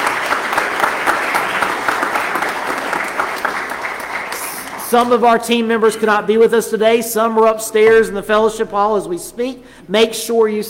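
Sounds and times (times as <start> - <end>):
applause: 0.0 - 5.3
speech: 4.9 - 10.6.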